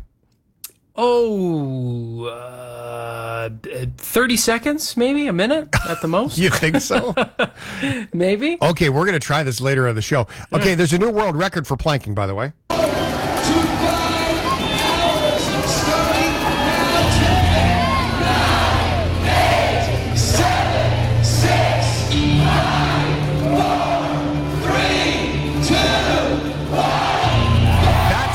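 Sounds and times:
speech: 1.0s - 12.6s
laughter: 5.7s - 8.0s
crowd cheering as a 61-year-old woman breaks her plank world record: 12.7s - 28.3s.

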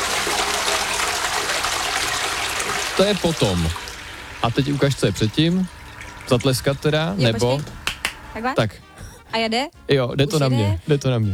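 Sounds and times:
toilet flushing: 0.0s - 8.5s
speech: 3.0s - 3.8s, 4.4s - 7.8s, 8.4s - 11.3s.

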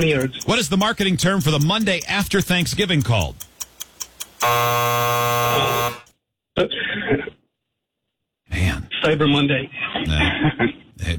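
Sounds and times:
speech: 0.0s - 3.5s, 4.4s - 6.0s, 6.6s - 7.2s, 8.5s - 11.1s
quiz game time-up buzzer: 4.4s - 6.2s.

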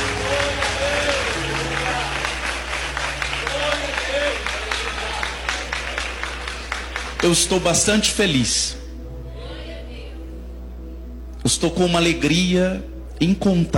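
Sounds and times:
audience applauding: 0.0s - 8.0s
speech: 7.2s - 8.8s, 11.5s - 13.7s.

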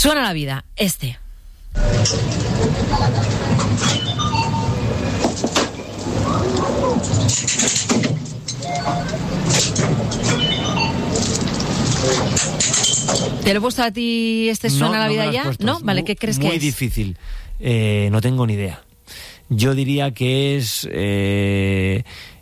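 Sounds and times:
speech: 0.0s - 1.2s, 1.8s - 4.4s, 6.9s - 22.3s
fairground ride: 1.8s - 13.4s.

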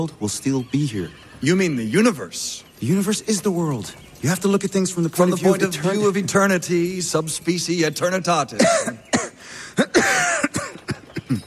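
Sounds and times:
speech: 0.0s - 10.0s
person coughing: 8.6s - 11.4s.

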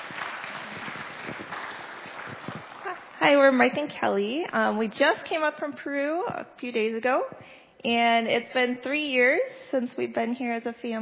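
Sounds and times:
crowd applause: 0.0s - 3.2s
speech: 3.2s - 11.0s.

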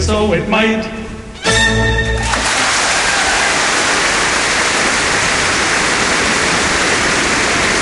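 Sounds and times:
speech: 0.1s - 1.0s
thunderous audience applause for tenors: 2.2s - 7.8s.

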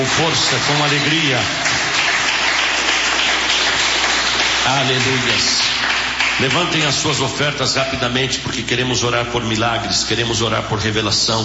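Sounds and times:
speech: 0.0s - 1.8s, 4.7s - 11.4s
church audience applauding: 0.0s - 8.3s.

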